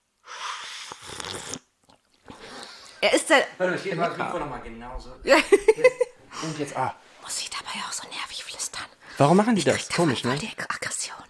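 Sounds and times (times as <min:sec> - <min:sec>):
mouth clicks and breaths: 0:00.2 - 0:03.0
person slurping hot tea: 0:00.3 - 0:02.9
speech: 0:03.0 - 0:08.2, 0:09.2 - 0:10.8.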